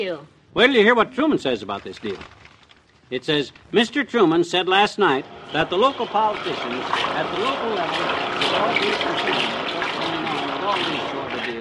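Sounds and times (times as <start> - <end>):
speech: 0.0 - 2.4, 3.1 - 9.6
washing machine running with water: 3.8 - 11.5.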